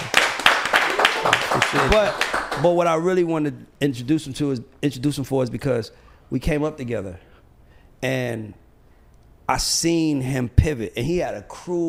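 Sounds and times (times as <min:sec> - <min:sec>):
audience clapping as a guest is introduced: 0:00.0 - 0:02.8
speech: 0:01.6 - 0:07.3, 0:08.0 - 0:08.6, 0:09.5 - 0:11.8.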